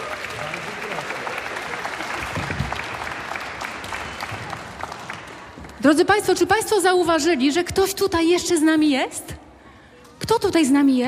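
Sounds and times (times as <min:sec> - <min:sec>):
audience applause: 0:00.0 - 0:05.8
speech: 0:05.8 - 0:09.4, 0:10.3 - 0:11.0.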